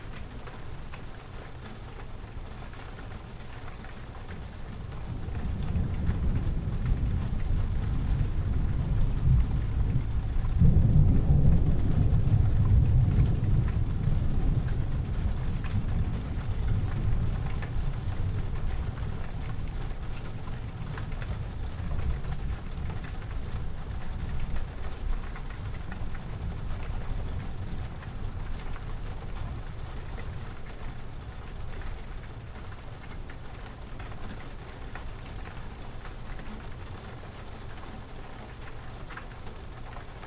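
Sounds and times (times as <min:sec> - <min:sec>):
thunder: 0:05.0 - 0:30.0.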